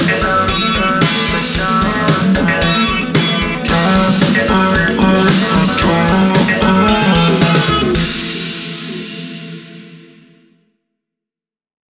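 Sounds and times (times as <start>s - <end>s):
pitched down drop: 0.0s - 9.1s.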